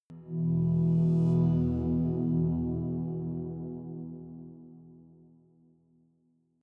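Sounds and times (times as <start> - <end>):
eighties synth pads: 0.1 - 5.3.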